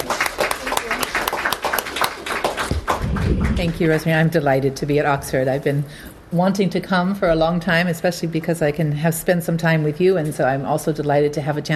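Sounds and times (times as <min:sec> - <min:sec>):
audience applause welcoming a speaker: 0:00.0 - 0:04.1
speech: 0:03.6 - 0:11.7.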